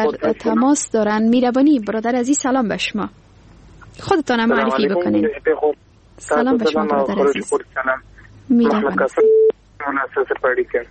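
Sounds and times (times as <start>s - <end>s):
speech: 0.0s - 3.3s, 4.0s - 10.9s
telephone line tone after a dropped call: 9.2s - 9.5s.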